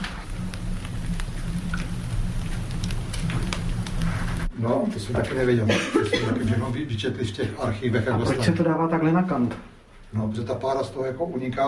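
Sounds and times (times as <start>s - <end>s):
freshly baked bread crackling while cooling: 0.0s - 4.5s
speech: 4.6s - 11.6s.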